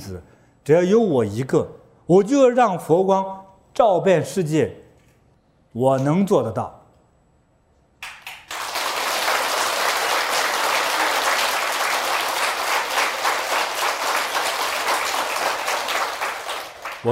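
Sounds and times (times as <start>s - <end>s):
speech: 0.1s - 4.8s, 5.8s - 6.8s
audience applause: 8.0s - 17.0s.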